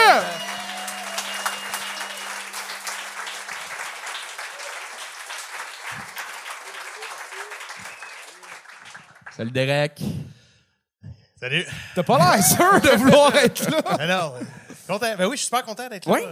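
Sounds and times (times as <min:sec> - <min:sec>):
crowd cheering and shouting: 0:00.0 - 0:03.6, 0:12.1 - 0:13.8
crowd clapping: 0:00.0 - 0:09.7
speech: 0:09.4 - 0:10.4, 0:11.4 - 0:16.3
laughter: 0:12.0 - 0:14.9.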